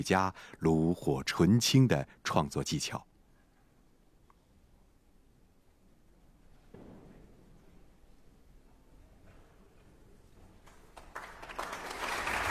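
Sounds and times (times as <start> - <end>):
speech: 0.0 - 3.1
concert hall applause: 10.6 - 12.4.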